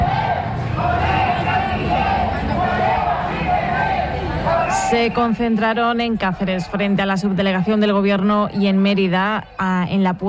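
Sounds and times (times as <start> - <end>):
roar of many people: 0.0 - 4.8
student protesters chanting in the street: 0.0 - 5.1
speech: 4.9 - 10.2.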